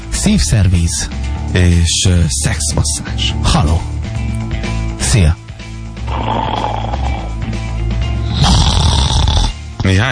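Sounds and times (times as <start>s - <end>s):
speech: 0.2s - 3.9s, 5.2s - 5.4s, 6.3s - 6.6s, 9.8s - 10.0s
loud snoring: 6.0s - 9.7s.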